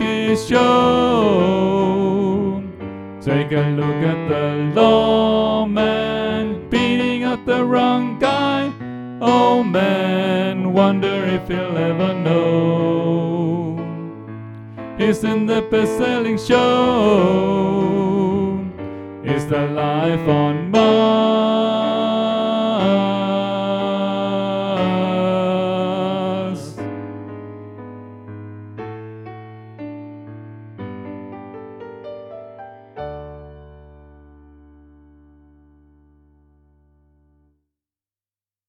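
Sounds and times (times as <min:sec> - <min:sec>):
tenor singing: 0:00.0 - 0:14.3, 0:14.9 - 0:27.0.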